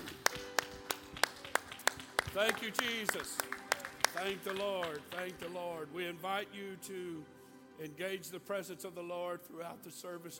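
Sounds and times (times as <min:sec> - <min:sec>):
audience clapping in unison: 0:00.0 - 0:05.7
speech: 0:02.4 - 0:03.6, 0:04.2 - 0:10.3.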